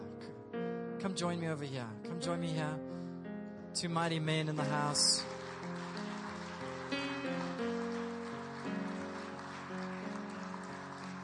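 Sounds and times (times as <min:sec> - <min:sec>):
speech: 0:01.0 - 0:03.0, 0:03.7 - 0:05.4
audience clapping: 0:04.6 - 0:11.2.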